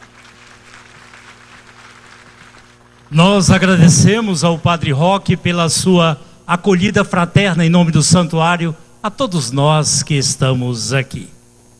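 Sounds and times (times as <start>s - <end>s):
crowd clapping: 0.0s - 4.9s
low constant electrical hum: 0.0s - 11.7s
speech: 3.1s - 11.3s.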